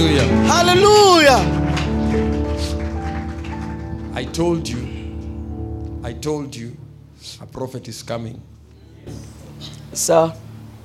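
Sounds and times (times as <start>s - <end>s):
audience clapping: 0.0s - 5.3s
speech: 4.2s - 4.9s, 6.0s - 10.4s.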